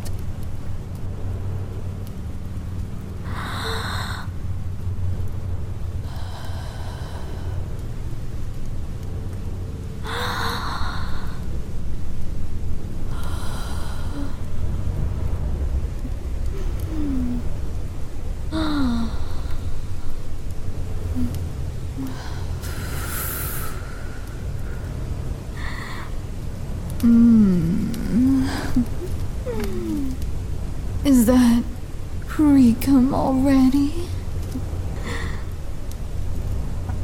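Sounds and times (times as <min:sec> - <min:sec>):
constant low rumbling noise: 0:00.0 - 0:37.0
slow breathing in and out: 0:03.2 - 0:04.6, 0:05.9 - 0:08.6, 0:10.0 - 0:11.8, 0:13.0 - 0:14.9, 0:21.1 - 0:30.2, 0:34.6 - 0:35.8.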